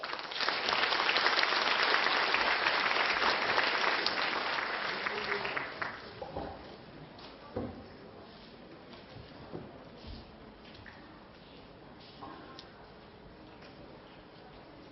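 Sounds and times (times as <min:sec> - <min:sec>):
warm audience applause: 0:00.0 - 0:06.2.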